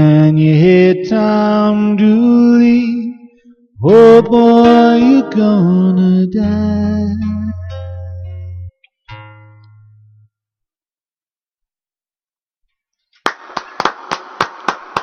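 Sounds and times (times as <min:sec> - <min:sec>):
speech: 0:00.0 - 0:02.9, 0:03.8 - 0:07.1
people clapping in a room: 0:13.2 - 0:15.0.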